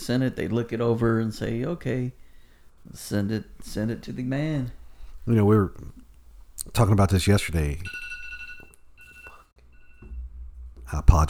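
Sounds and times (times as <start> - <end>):
speech: 0.1 - 2.2, 2.8 - 6.0, 6.6 - 8.1, 10.9 - 11.2
electronic alarm going off: 7.9 - 10.2.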